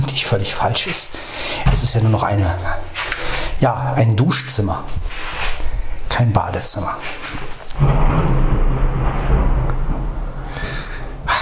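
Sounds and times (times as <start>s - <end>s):
speech: 0.2s - 5.4s, 6.2s - 8.0s
thunder from a thunderstorm: 7.8s - 11.4s.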